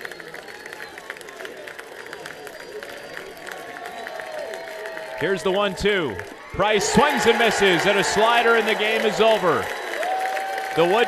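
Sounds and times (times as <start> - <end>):
Friday night baseball stadium crowd murmuring roar in Zebulon: 0.0 - 11.0
scattered claps from the crowd: 0.0 - 11.0
crowd shouts: 2.4 - 11.0
speech: 5.2 - 9.8, 10.8 - 11.0.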